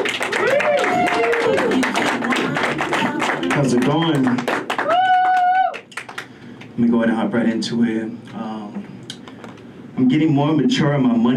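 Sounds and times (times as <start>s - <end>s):
crowd applauding: 0.0s - 6.8s
voices cheering and whooping: 0.2s - 2.1s, 4.8s - 5.9s
speech: 3.6s - 4.6s, 6.8s - 8.5s, 10.0s - 11.3s.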